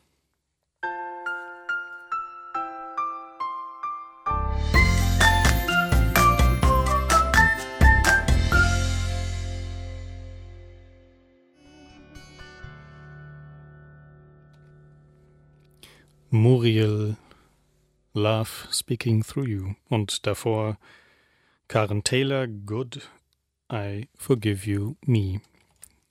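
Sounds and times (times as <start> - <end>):
song with bell-like melody, deep bass and percussion: 3.9 - 9.5
speech: 16.4 - 17.2, 18.2 - 21.0, 21.7 - 25.5.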